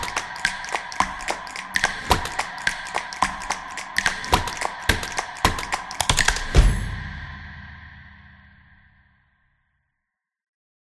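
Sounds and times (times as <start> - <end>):
percussion music: 0.0 - 8.7.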